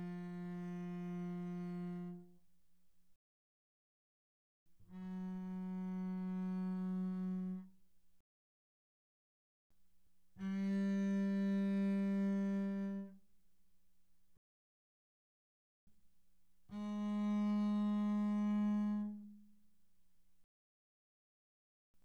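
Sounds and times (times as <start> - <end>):
double bass bowed pianissimo on the G string: 0.0 - 2.3, 4.9 - 7.8, 10.4 - 13.2, 16.7 - 19.5.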